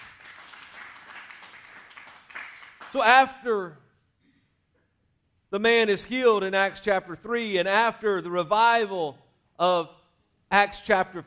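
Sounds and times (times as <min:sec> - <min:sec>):
audience hand clap of praise: 0:00.0 - 0:03.3
speech: 0:02.9 - 0:03.8, 0:05.5 - 0:11.2.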